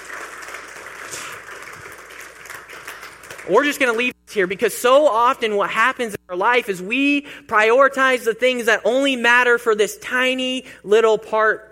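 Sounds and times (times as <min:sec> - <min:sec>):
round of applause: 0:00.0 - 0:04.0
speech: 0:03.4 - 0:11.7.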